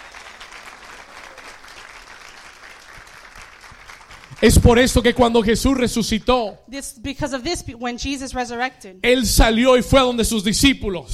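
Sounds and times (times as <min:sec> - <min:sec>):
audience applause: 0:00.0 - 0:04.7
speech: 0:04.4 - 0:11.1.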